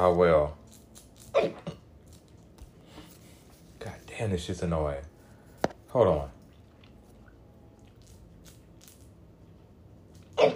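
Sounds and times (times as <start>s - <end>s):
speech: 0.0s - 0.6s, 1.4s - 1.6s, 4.2s - 5.1s, 6.0s - 6.4s, 10.4s - 10.5s
hiccups: 1.3s - 1.9s, 10.3s - 10.5s.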